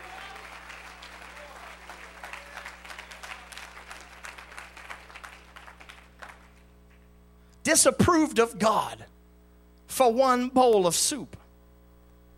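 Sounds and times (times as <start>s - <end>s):
crowd hand clapping: 0.0s - 7.1s
low constant hum: 0.0s - 12.3s
speech: 7.6s - 9.1s, 10.0s - 11.4s.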